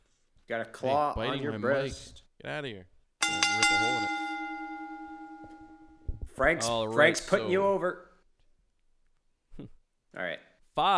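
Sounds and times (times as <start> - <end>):
speech: 0.5 - 4.2, 6.4 - 8.1, 9.6 - 10.9
bell ringing: 3.2 - 7.4.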